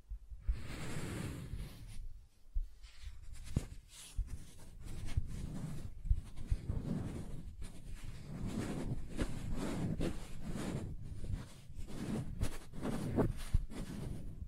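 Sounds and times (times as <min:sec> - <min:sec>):
soft tracing over smooth and rough surfaces: 0:00.0 - 0:14.4
crisp ticks and scratches: 0:03.2 - 0:14.4.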